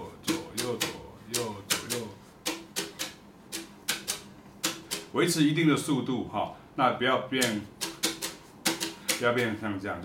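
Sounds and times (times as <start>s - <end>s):
drum brush taps: 0.2s - 5.1s, 7.4s - 9.6s
speech: 5.2s - 7.8s, 9.2s - 10.0s.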